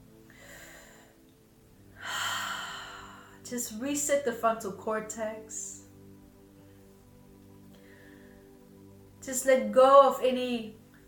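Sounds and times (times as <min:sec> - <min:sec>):
deep breath taken during a guided relaxation exercise: 0:00.3 - 0:01.3, 0:02.0 - 0:03.4, 0:07.7 - 0:08.8
speech: 0:03.5 - 0:05.7, 0:09.3 - 0:10.8.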